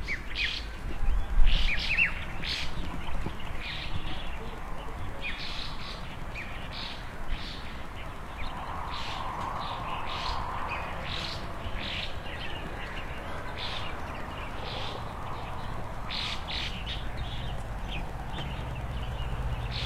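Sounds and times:
birds chirping in front of a country house: 0.0 - 19.8.

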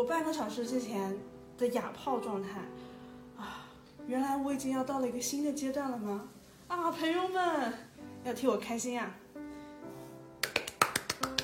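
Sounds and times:
speech: 0.0 - 9.2
person clapping for oneself: 10.4 - 11.4.

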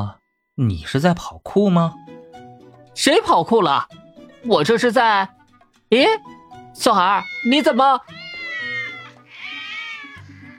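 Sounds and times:
speech: 0.0 - 2.1, 3.0 - 8.2
cats meowing: 6.8 - 10.5.

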